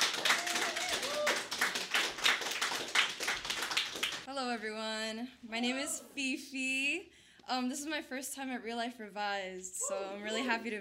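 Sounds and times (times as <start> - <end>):
audience applause: 0.0 - 4.2
high-pitched cheer or whoop: 0.3 - 1.5
speech: 4.6 - 10.7.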